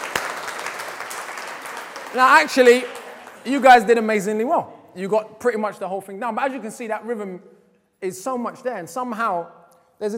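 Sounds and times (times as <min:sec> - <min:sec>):
crowd applause: 0:00.0 - 0:03.8
speech: 0:02.1 - 0:10.1.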